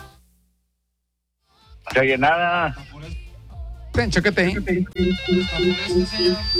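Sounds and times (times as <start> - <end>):
speech: 1.9 - 3.2, 4.0 - 6.5
mobile phone ringtone: 4.6 - 6.5.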